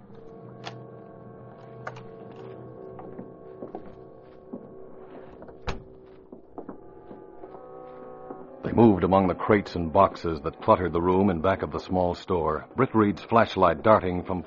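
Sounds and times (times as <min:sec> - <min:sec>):
rear door unlocked with key and opened: 0:01.8 - 0:03.2
speech: 0:08.8 - 0:14.4.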